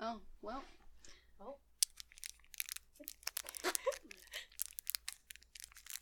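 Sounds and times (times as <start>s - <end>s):
crinkly plastic packaging pulled open as ASMR: 1.7s - 6.0s.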